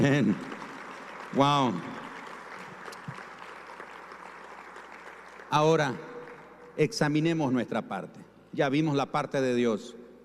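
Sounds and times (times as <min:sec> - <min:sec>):
speech: 0:00.0 - 0:00.6, 0:01.3 - 0:02.0, 0:05.5 - 0:06.1, 0:06.8 - 0:10.0
audience applauding: 0:00.0 - 0:06.7.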